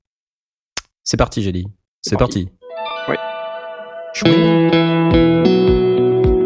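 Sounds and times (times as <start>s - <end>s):
speech: 1.1s - 3.3s, 4.1s - 5.8s
electric guitar strumming through vintage car-styled amplifier: 2.6s - 6.4s.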